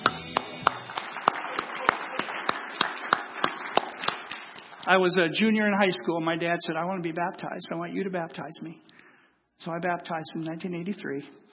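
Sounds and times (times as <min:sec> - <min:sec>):
one person clapping: 0:00.0 - 0:04.9
speech: 0:04.9 - 0:08.9, 0:09.6 - 0:11.5.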